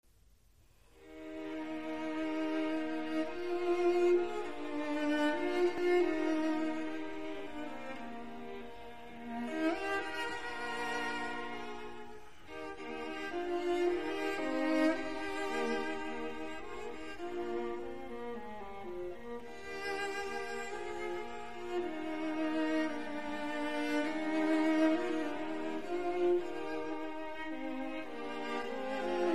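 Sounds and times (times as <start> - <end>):
string quartet playing in B flat major: 1.0 - 29.3.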